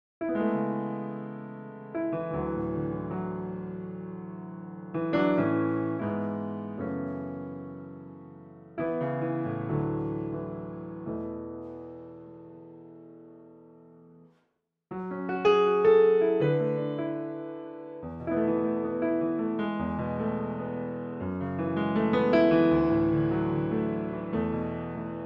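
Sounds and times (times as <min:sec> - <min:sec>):
Kawai EX Pro digital piano: 0:00.2 - 0:14.3, 0:14.9 - 0:25.2.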